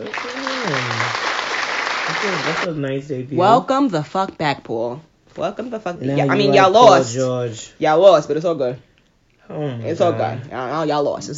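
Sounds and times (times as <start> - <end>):
person whooping: 0.0 - 1.3
applause sound effect: 0.0 - 2.7
speech: 0.7 - 1.0, 2.2 - 8.9, 9.5 - 11.3.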